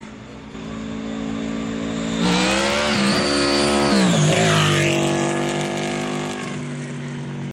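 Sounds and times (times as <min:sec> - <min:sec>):
blown Vmax motorcycle engine: 0:00.0 - 0:07.5.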